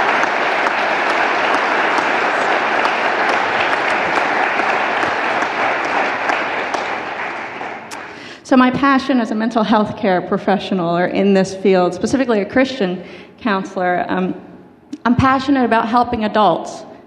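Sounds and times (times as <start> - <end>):
audience applause: 0.0 - 8.3
speech: 8.5 - 14.4, 15.0 - 16.9.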